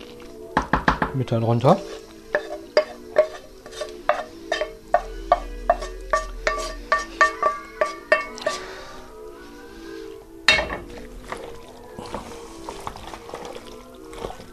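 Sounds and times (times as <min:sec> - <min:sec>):
speech: 0:01.2 - 0:02.0
spoon stirring asparagus in a pan: 0:01.6 - 0:09.1
asparagus sizzling in a pan: 0:01.6 - 0:14.5.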